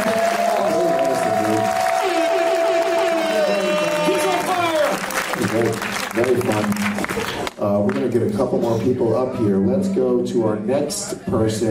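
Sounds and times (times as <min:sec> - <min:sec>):
long sustained high whoop: 0:00.0 - 0:04.8
audience applause: 0:00.0 - 0:08.3
speech: 0:05.6 - 0:11.6.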